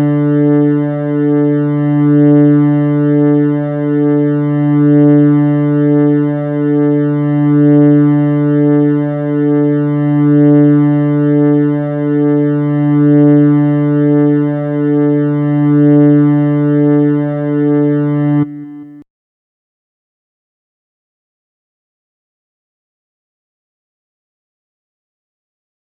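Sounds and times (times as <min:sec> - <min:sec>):
synthesised D note of fourth guitar string for tuning: 0:00.0 - 0:19.0.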